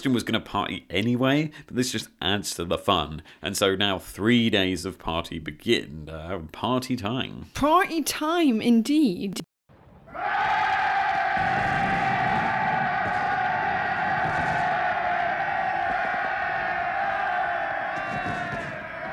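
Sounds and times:
speech: 0.0 - 9.4
cheering sound effects: 10.1 - 19.1
fireworks sound effects: 11.1 - 16.7, 18.0 - 19.1.

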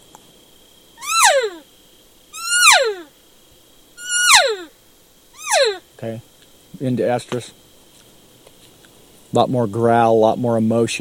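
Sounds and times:
hunter's imitation of a standard cow call: 1.0 - 1.6, 2.4 - 3.1, 4.0 - 4.7, 5.4 - 5.8
speech: 6.0 - 7.6, 9.3 - 10.9.

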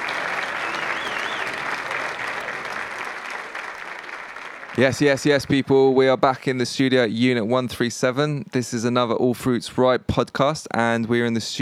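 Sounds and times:
faint whistle: 0.0 - 3.2
round of applause: 0.0 - 6.0
speech: 4.8 - 11.6.

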